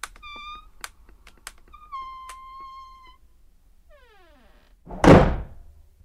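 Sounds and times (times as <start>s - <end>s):
hut door falling shut: 4.9s - 5.7s
loud knocks and rattling bangs: 4.9s - 5.8s.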